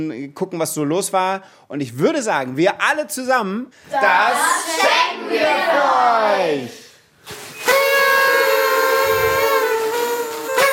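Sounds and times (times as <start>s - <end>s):
speech: 0.0s - 7.4s
party horn blaring: 7.6s - 10.7s.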